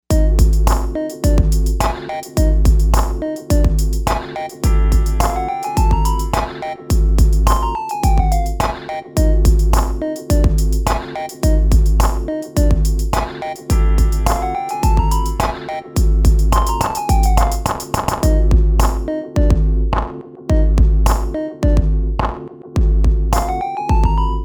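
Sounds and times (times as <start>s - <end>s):
electro music on AKAI XR20: 0.0s - 24.4s.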